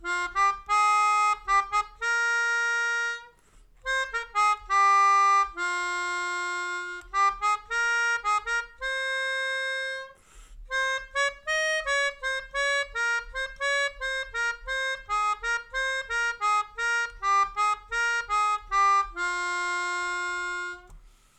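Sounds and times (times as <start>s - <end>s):
melodica: 0.0s - 21.3s.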